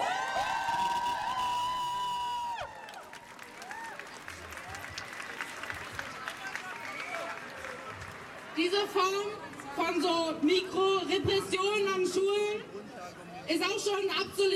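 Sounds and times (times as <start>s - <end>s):
crowd applauding at a school student strike rally: 0.0s - 8.6s
crowd cheering at a school student strike rally against military conscription: 0.0s - 9.6s
speech: 8.7s - 12.7s, 13.5s - 14.5s.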